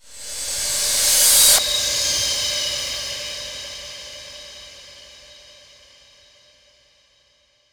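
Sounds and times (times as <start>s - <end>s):
reverse cymbal: 0.0s - 3.6s.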